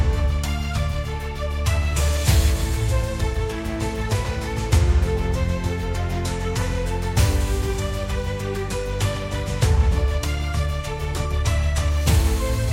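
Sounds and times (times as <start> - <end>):
epic orchestral music: 0.0 - 12.7.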